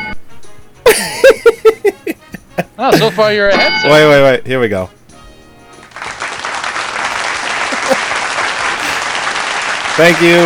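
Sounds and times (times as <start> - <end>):
laughter: 0.9 - 3.3, 7.4 - 9.3
speech: 2.8 - 5.0, 10.0 - 10.4
audience applause: 5.8 - 10.4.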